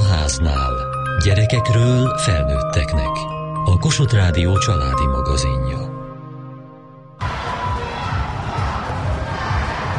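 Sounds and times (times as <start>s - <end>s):
speech: 0.4s - 5.9s
crowd cheering in the Körmend sports hall: 7.2s - 9.9s.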